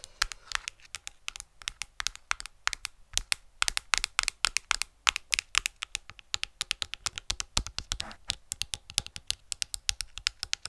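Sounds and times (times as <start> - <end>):
rapid tapping on a hard surface: 0.0 - 10.6.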